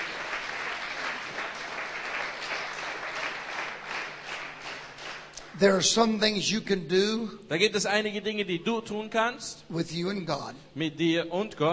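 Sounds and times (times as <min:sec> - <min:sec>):
audience clapping: 0:00.0 - 0:06.2
speech: 0:05.6 - 0:11.7.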